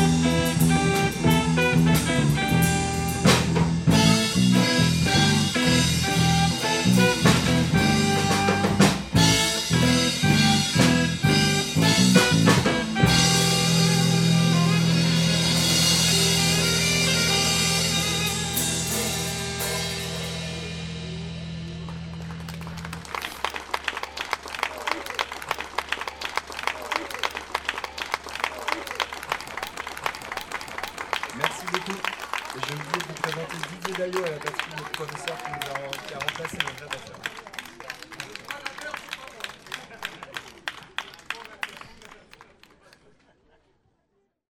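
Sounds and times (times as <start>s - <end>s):
jazz ramwong music: 0.0s - 23.5s
laughter: 24.0s - 44.1s.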